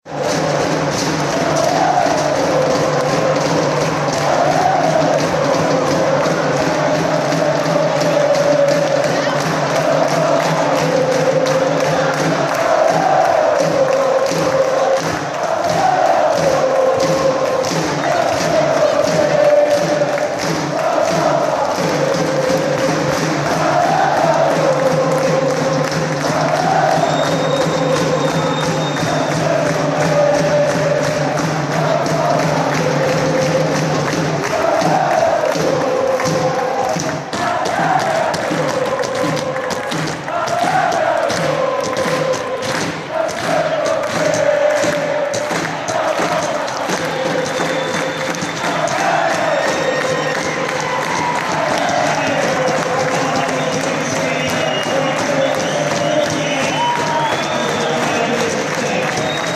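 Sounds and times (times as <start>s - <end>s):
crowd chanting: 0.0s - 59.5s.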